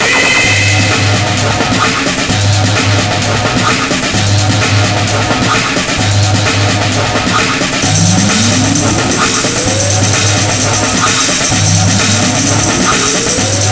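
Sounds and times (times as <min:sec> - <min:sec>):
background music: 0:00.0 - 0:13.7.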